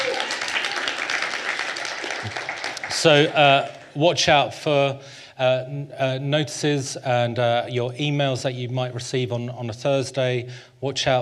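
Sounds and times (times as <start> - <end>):
audience clapping: 0.0 - 4.1
speech: 2.2 - 11.2.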